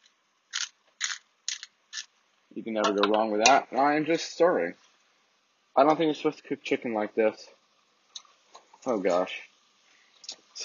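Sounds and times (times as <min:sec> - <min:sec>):
salt and pepper grinder grinding: 0:00.5 - 0:02.1
speech: 0:02.6 - 0:04.8, 0:05.8 - 0:07.6, 0:08.8 - 0:09.5.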